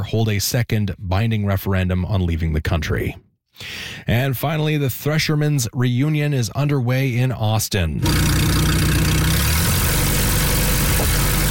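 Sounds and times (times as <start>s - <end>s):
speech: 0.0s - 8.6s
antique tractor engine running: 8.0s - 11.4s.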